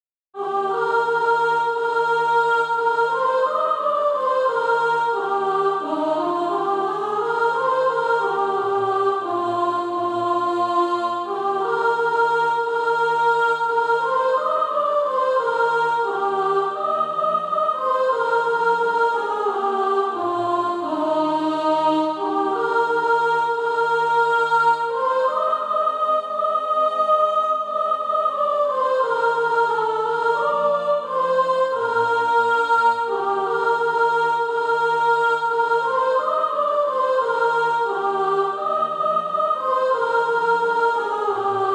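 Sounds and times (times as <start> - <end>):
soprano singing practice music: 0.4 - 41.7.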